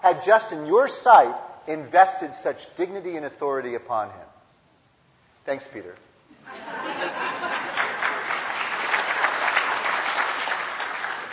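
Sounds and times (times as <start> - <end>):
speech: 0.0 - 4.3, 5.5 - 7.1
laughter: 6.4 - 8.5
audience clapping: 6.9 - 11.3.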